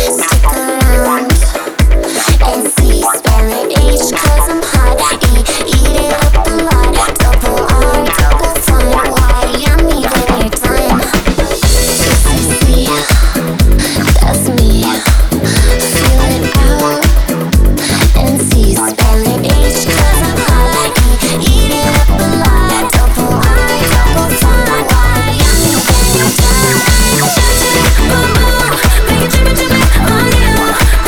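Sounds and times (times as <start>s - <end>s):
nu disco funky bass house music remix: 0.0s - 31.0s.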